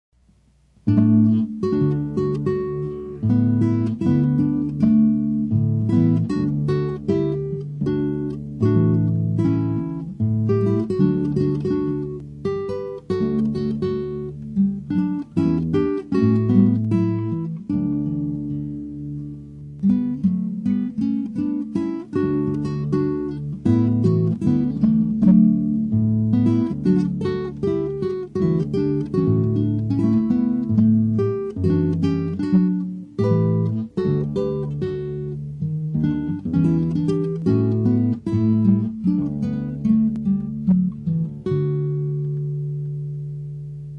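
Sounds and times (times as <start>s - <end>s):
guitar: 0.2s - 43.9s.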